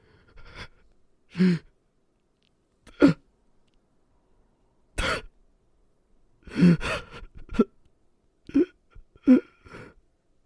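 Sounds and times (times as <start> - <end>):
person crying: 6.5 - 7.7, 8.5 - 10.0.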